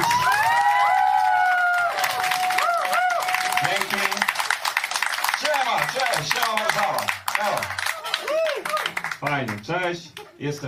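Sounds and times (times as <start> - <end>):
audience applause and cheering: 0.0 - 9.7
speech: 9.9 - 10.6.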